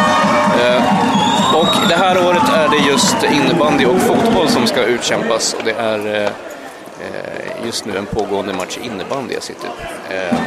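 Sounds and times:
crowd cheering and shouting after a goal at a floorball match: 0.0s - 10.4s
speech: 1.9s - 10.4s.

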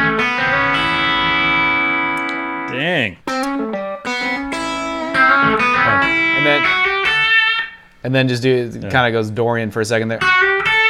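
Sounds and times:
guitar phrase with hammer-on and open strings: 0.0s - 7.8s
speech: 8.0s - 10.5s.

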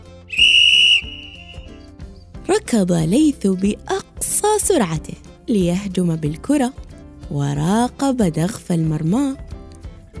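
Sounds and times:
referee's whistle blown to start match: 0.3s - 1.8s
speech: 2.5s - 4.0s, 4.6s - 9.4s.

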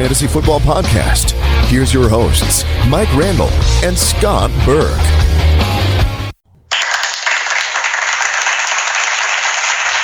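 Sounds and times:
speech: 0.0s - 5.6s
clapping applause sound effect: 6.7s - 10.0s.

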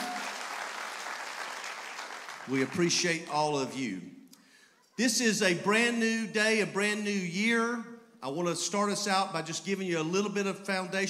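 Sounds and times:
audience applauding at a church service: 0.0s - 3.4s
speech: 2.5s - 4.2s, 5.0s - 11.0s.

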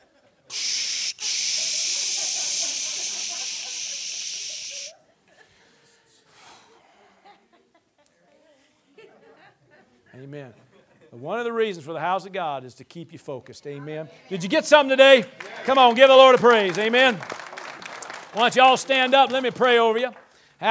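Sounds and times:
laughter: 0.0s - 6.0s, 7.0s - 11.2s
loud steady spray hiss from a decontamination station: 0.5s - 4.9s
speech: 10.2s - 17.4s, 18.3s - 20.6s.

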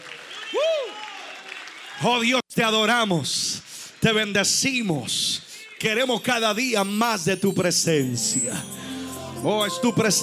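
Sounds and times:
audience applauding: 0.0s - 2.4s
speech: 2.0s - 8.8s, 9.4s - 10.2s.

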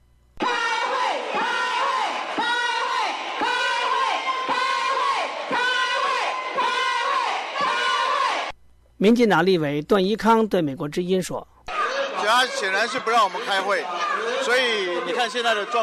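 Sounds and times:
Taiwan legislators shouting and protesting in a chaotic session: 0.4s - 8.5s, 11.7s - 15.8s
speech: 9.0s - 11.5s, 12.3s - 15.8s.

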